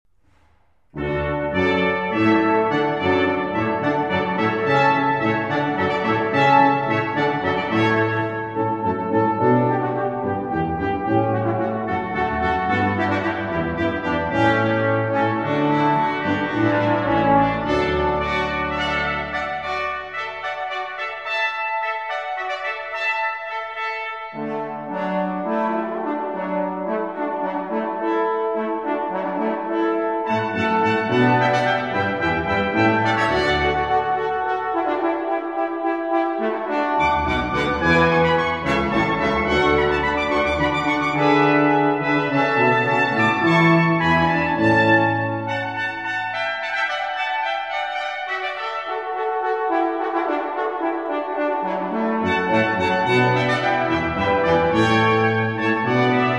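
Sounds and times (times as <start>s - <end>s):
quintet playing: 0.3s - 56.3s.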